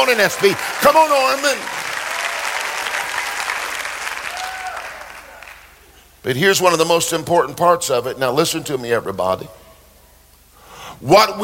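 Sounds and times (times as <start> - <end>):
speech: 0.0 - 1.8, 6.2 - 9.6, 11.0 - 11.4
church congregation clapping: 0.0 - 6.0.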